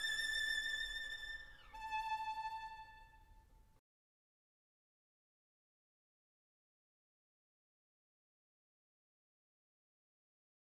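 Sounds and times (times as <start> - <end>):
violin playing legato: 0.0 - 3.4.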